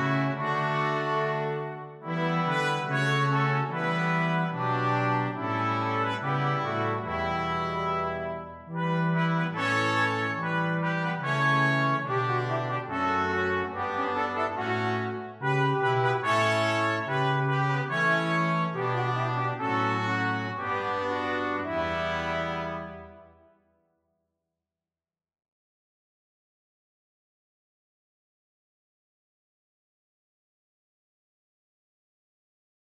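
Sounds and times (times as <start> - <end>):
brass quintet: 0.0 - 23.7.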